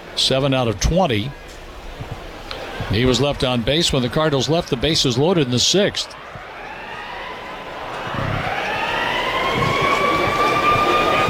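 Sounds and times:
rough noisy background: 0.0 - 11.2
speech: 0.2 - 1.4, 2.8 - 6.3
alarm siren wailing: 6.1 - 11.2.

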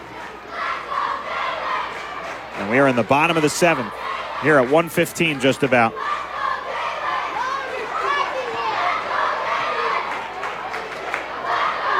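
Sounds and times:
children chanting at a baseball game: 0.0 - 11.9
speech: 2.6 - 6.1.

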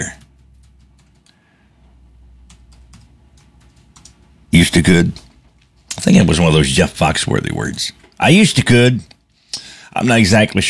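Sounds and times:
speech: 0.0 - 0.2, 4.6 - 5.2, 6.0 - 9.1, 10.0 - 10.6
typing on a computer keyboard: 0.0 - 1.4, 2.4 - 4.3.

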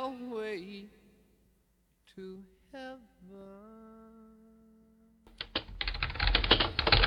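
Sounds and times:
speech: 2.2 - 3.9
rapid typing on a computer keyboard at work: 5.3 - 7.0.

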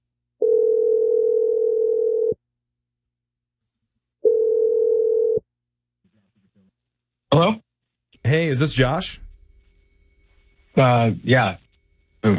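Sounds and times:
long steady telephone ringing tones: 0.4 - 2.4, 4.2 - 5.4
speech: 8.3 - 9.2, 10.8 - 11.6.

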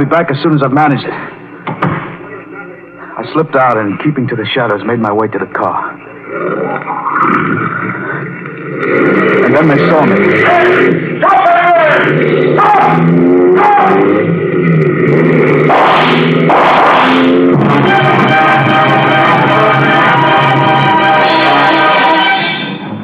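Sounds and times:
speech: 0.0 - 1.8, 3.2 - 8.2, 8.8 - 18.4
pursuing motorcycle engines roaring: 5.5 - 23.0.

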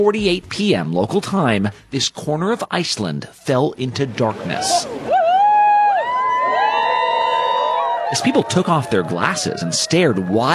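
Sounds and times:
speech: 0.0 - 5.2, 8.1 - 10.5
people whooping and cheering at a total solar eclipse in Iceland: 4.5 - 10.5.

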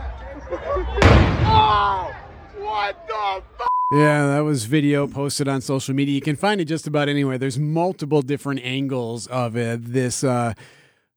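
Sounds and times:
laughter: 0.0 - 2.1, 3.0 - 10.8
firework explosion: 1.0 - 2.6
speech: 1.8 - 10.8.

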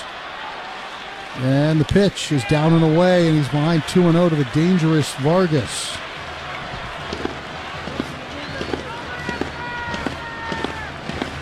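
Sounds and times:
speech: 1.4 - 6.1
drum banged with a hammer on top of dugout: 6.8 - 11.4.

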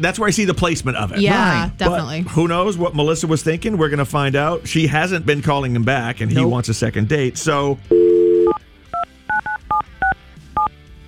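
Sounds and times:
speech: 0.0 - 8.0
touch-tone phone dial tone: 7.9 - 10.7
touch-tone phone keypad beeps: 7.9 - 10.7.

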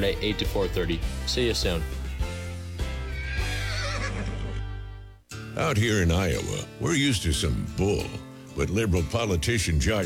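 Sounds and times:
speech: 0.0 - 2.0, 5.6 - 10.0
horse neighing in a radio ad for a tack store: 2.9 - 5.0.

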